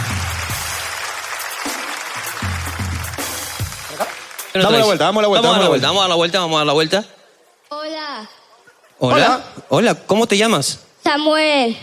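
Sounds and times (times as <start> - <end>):
audience applause: 0.0 - 5.4
speech: 4.6 - 7.2, 9.0 - 11.8.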